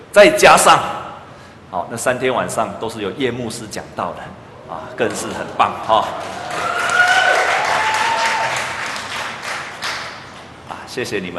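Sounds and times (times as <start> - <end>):
speech: 0.2 - 0.9, 1.7 - 6.8, 10.9 - 11.3
audience applause: 5.1 - 10.2.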